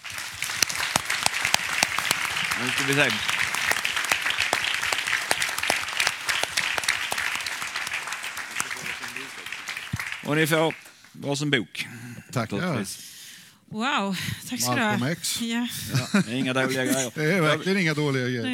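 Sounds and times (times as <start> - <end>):
audience applause: 0.0 - 11.2
speech: 2.6 - 3.4, 10.3 - 13.1, 13.7 - 18.5
laughter: 8.5 - 9.5, 15.9 - 18.5.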